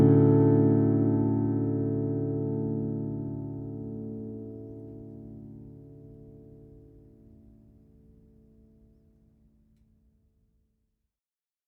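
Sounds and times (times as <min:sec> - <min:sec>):
15 inch flattop steel string guitar of Madagascar rosewood and moon spruce: 0:00.0 - 0:06.9.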